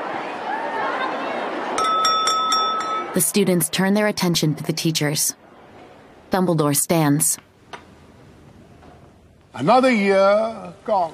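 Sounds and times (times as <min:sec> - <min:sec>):
crowd murmur: 0:00.0 - 0:03.3
spoon tapping a glass at the head table of a great hall: 0:01.8 - 0:03.2
speech: 0:03.2 - 0:05.4, 0:06.3 - 0:07.5, 0:09.6 - 0:11.1.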